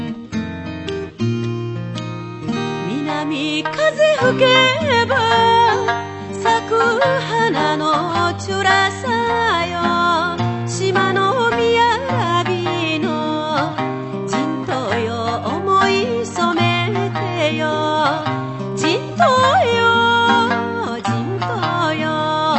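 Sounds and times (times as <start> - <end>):
Okinawan song: 0.2 - 22.5.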